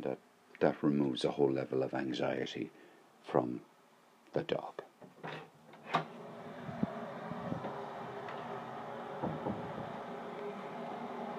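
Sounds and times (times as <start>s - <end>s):
speech: 0.0s - 3.7s, 4.3s - 5.4s
noisy kettle boiling: 6.1s - 11.3s.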